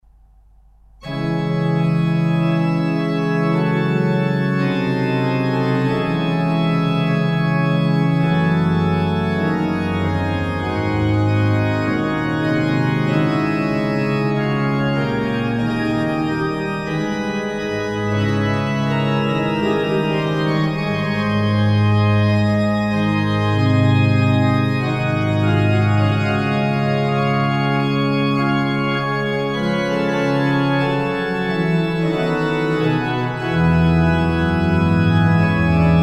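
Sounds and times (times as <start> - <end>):
organ playing plein jeu gravement: 1.0 - 36.0
laughter: 19.1 - 21.4.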